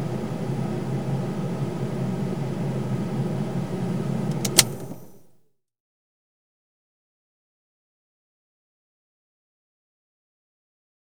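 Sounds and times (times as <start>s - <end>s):
car interior heating fan on auto: 0.2s - 5.2s.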